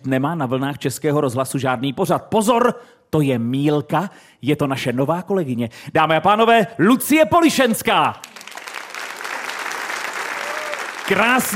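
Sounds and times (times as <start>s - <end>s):
speech: 0.0s - 8.3s, 11.1s - 11.5s
live audience applause at a Czech radio event in Bohumín: 8.2s - 11.5s.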